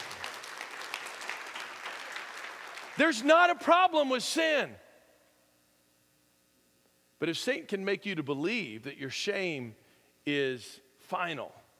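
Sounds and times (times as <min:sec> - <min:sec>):
audience applause: 0:00.0 - 0:03.2
speech: 0:03.0 - 0:04.8, 0:07.2 - 0:11.6.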